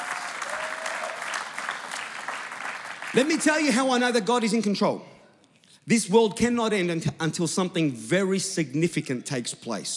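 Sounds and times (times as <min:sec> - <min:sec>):
church congregation applauding: 0:00.0 - 0:03.4
speech: 0:03.1 - 0:05.1, 0:05.9 - 0:09.9.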